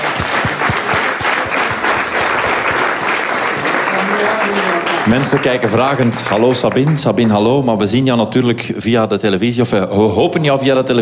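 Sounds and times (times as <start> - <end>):
audience applause: 0.0 - 7.7
speech: 5.0 - 11.0.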